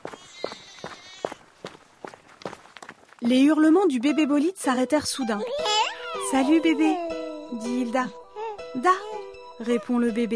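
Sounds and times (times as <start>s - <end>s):
running footsteps climbing uphill: 0.0s - 3.6s
speech: 3.2s - 10.3s.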